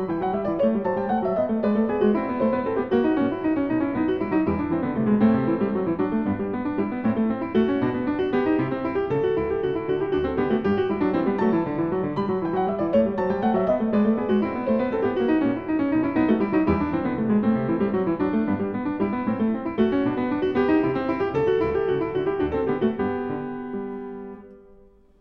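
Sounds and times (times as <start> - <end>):
solo keyboard canon piece for one keyboard on piano: 0.0 - 25.0.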